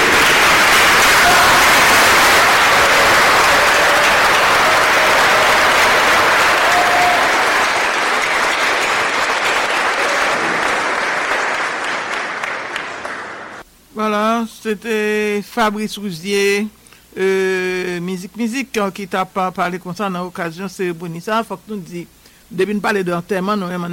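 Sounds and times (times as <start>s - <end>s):
audience applauding in a standing ovation: 0.0s - 13.6s
speech: 14.7s - 23.9s.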